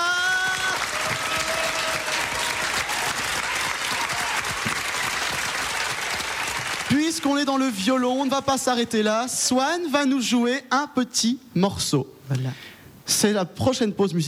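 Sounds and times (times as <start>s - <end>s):
audience applause: 0.0s - 8.6s
speech: 7.2s - 14.2s.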